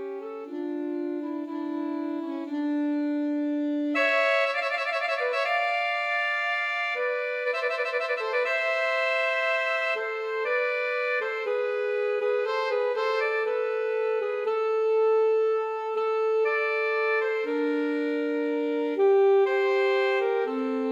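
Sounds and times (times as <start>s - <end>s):
alto sax trio playing a pastorale: 0.0s - 20.8s.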